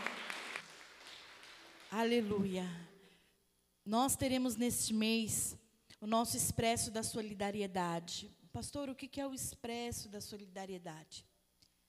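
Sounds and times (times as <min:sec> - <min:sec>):
audience applauding: 0:00.0 - 0:02.0
speech: 0:01.9 - 0:02.9, 0:03.9 - 0:11.3.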